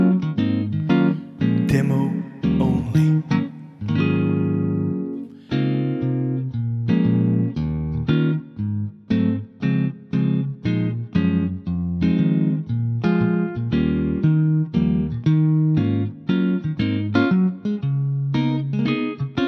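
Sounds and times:
sunburst guitar playing in D flat: 0.0 - 19.4.

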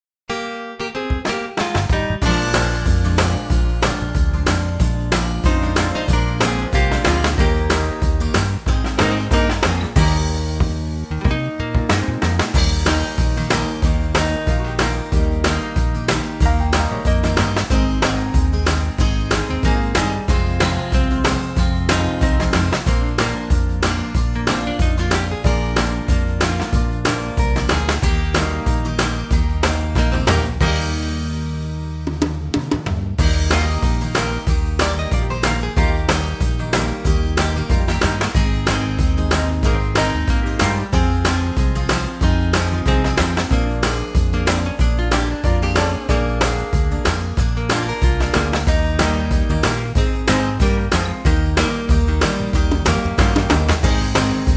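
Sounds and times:
country music in E flat: 0.3 - 54.5.

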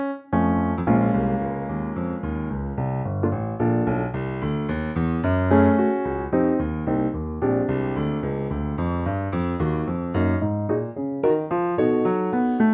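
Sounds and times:
bright solo piano arrangement of an American standard: 0.0 - 12.7.

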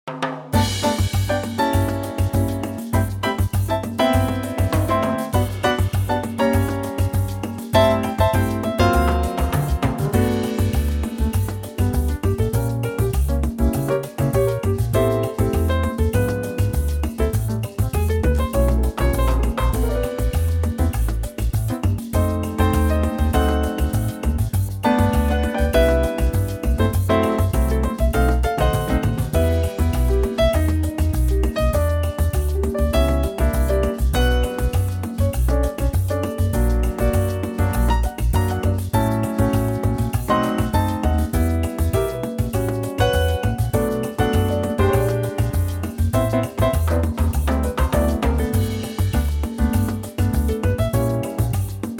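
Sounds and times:
latin music in G: 0.0 - 51.9.

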